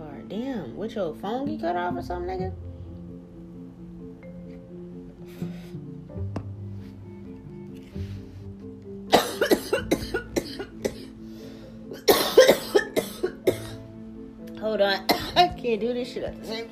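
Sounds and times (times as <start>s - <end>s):
speech: 0.3s - 2.7s, 15.7s - 16.6s
person coughing after choking on smoke: 9.1s - 11.2s, 11.9s - 13.8s, 15.1s - 15.6s.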